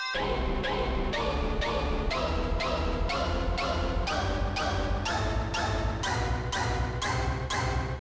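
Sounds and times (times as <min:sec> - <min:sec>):
speaker test sound: 0:00.2 - 0:08.1.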